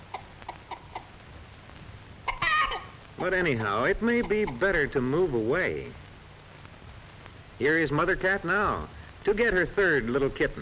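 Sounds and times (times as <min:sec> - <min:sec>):
hen clucking: 0:00.0 - 0:01.2, 0:02.2 - 0:04.9
faint low rumble: 0:00.0 - 0:10.6
speech: 0:03.2 - 0:06.0, 0:07.6 - 0:10.6.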